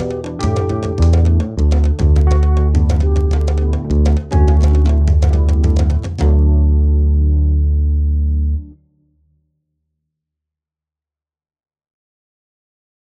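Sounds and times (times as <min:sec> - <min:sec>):
instrumental track without melody: 0:00.0 - 0:08.8.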